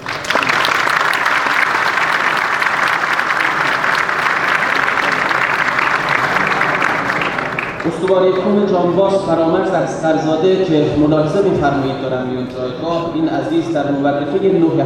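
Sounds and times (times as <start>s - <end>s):
audience applause in honour of a disabled war veteran: 0.0s - 8.6s
speech: 7.8s - 14.8s.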